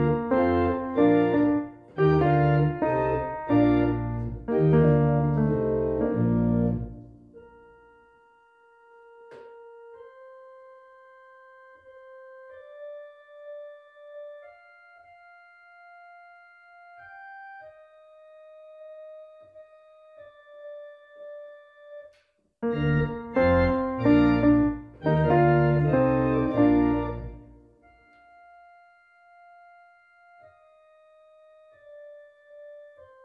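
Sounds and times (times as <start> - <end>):
tenor accordion: 0.0 - 7.0, 11.4 - 18.4, 22.6 - 30.9.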